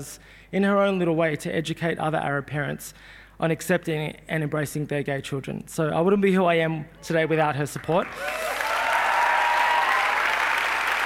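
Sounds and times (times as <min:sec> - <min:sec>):
speech: 0:00.0 - 0:08.7
audience applause: 0:08.0 - 0:11.0.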